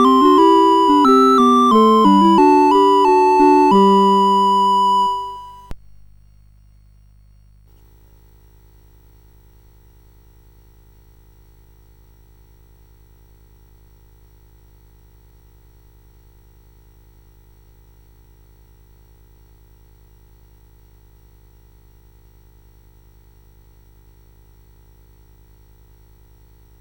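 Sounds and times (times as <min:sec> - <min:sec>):
CSG 8580 sound chip: 0:00.0 - 0:05.7.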